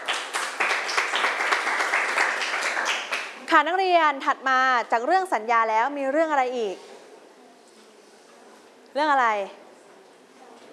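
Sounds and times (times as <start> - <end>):
classroom applause: 0.0 - 3.5
speech: 3.5 - 6.9, 9.0 - 9.6.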